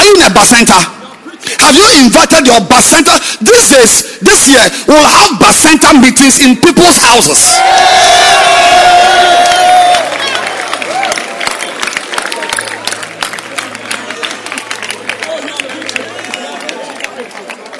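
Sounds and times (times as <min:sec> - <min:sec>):
speech: 0:00.3 - 0:09.4
crowd excitedly shouting and cheering: 0:07.1 - 0:17.7.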